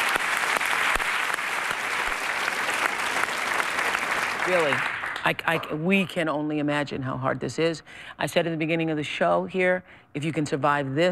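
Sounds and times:
studio audience applause: 0.0s - 5.3s
speech: 4.5s - 11.1s.

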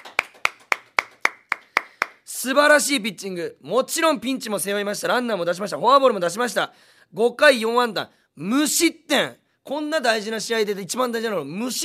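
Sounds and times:
hand clapping applause: 0.0s - 2.3s
speech: 2.4s - 11.8s.

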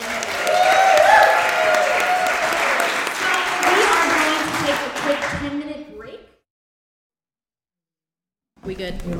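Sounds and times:
audience applause for a pair of women on stage: 0.0s - 5.8s.

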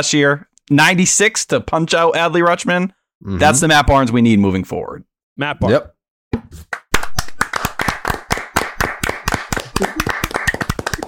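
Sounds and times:
speech: 0.0s - 5.9s
hand clapping: 6.6s - 11.0s.

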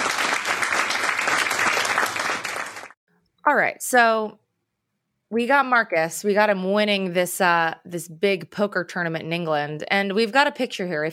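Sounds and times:
audience applause: 0.0s - 3.0s
speech: 3.5s - 4.4s, 5.3s - 11.1s.

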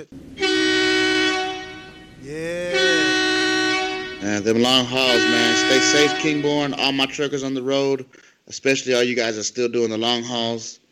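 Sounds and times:
speech: 0.0s - 0.5s, 2.3s - 2.6s, 4.2s - 10.8s
air horn sound effect: 0.4s - 7.0s.

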